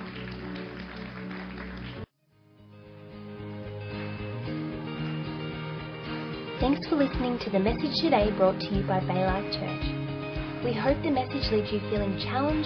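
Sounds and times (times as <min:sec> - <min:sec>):
audience applause: 0:00.0 - 0:02.1, 0:03.9 - 0:06.4
soft sustained music: 0:00.0 - 0:12.6
speech: 0:06.6 - 0:12.6.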